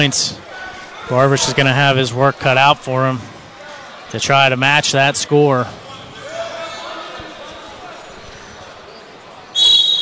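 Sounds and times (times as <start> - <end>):
speech: 0.0 - 0.5, 1.1 - 3.3, 4.1 - 5.8
referee's whistle at wrestling match: 9.5 - 10.0.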